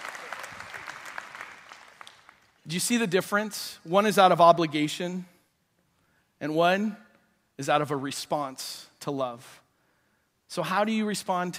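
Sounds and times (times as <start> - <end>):
audience clapping: 0.0 - 2.7
speech: 2.7 - 5.3, 6.4 - 7.0, 7.6 - 9.6, 10.5 - 11.5.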